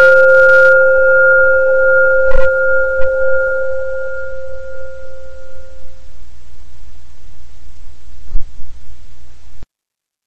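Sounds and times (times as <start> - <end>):
single meditation bell ringing: 0.1 - 6.0.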